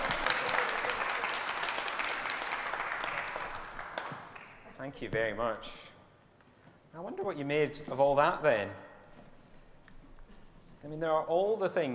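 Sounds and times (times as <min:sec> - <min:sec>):
audience applause: 0:00.0 - 0:04.7
speech: 0:04.9 - 0:05.9, 0:07.0 - 0:08.9, 0:10.8 - 0:11.9.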